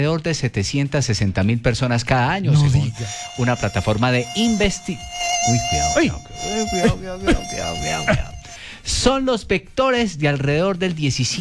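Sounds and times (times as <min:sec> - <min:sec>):
speech: 0:00.0 - 0:11.3
mosquito buzzing: 0:02.5 - 0:09.1.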